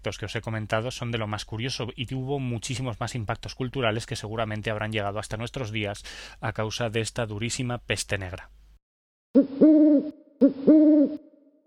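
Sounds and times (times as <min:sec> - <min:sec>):
speech: 0:00.0 - 0:08.6, 0:09.3 - 0:11.3
owl hooting: 0:09.4 - 0:11.4.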